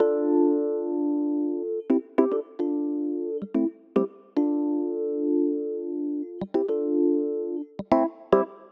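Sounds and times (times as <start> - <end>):
Rhodes electric piano: 0.0 - 8.7.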